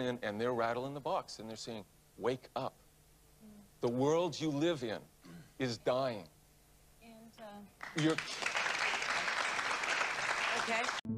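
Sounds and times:
speech: 0.0 - 2.8, 3.8 - 6.4, 7.4 - 8.5, 10.6 - 11.1
crowd applauding: 7.8 - 11.1.

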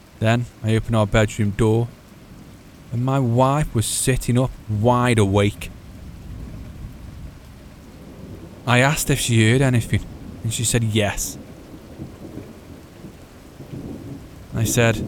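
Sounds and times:
low rumbling storm: 0.0 - 15.0
steady rain: 0.0 - 15.0
speech: 0.2 - 2.0, 2.9 - 5.7, 8.7 - 11.5, 14.6 - 15.0.

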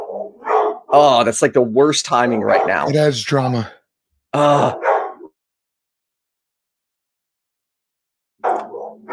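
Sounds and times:
dogs barking: 0.0 - 1.0, 2.4 - 2.9, 4.8 - 5.3, 8.4 - 9.1
speech: 0.9 - 4.9.

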